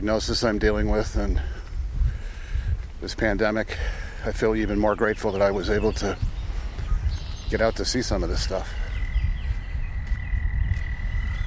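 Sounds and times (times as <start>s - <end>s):
speech: 0.0s - 1.6s, 3.0s - 6.3s, 7.5s - 8.8s
frogs singing: 5.1s - 11.4s.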